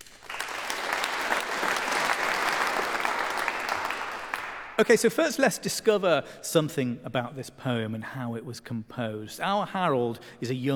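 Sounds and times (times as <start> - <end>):
audience applause at a literary talk: 0.0 - 4.9
speech: 4.8 - 10.7.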